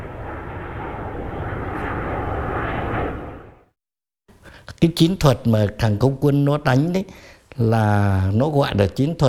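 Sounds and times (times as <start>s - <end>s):
F-105D fighter jet engine roar: 0.0s - 3.7s
speech: 4.8s - 9.2s.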